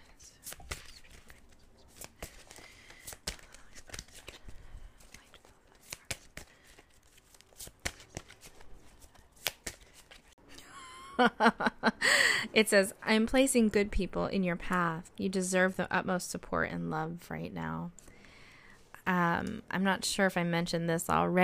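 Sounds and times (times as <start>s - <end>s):
oracle card deck shuffled and one card pulled: 0.0s - 10.4s
speech: 11.2s - 11.7s, 12.6s - 18.0s, 19.1s - 21.4s.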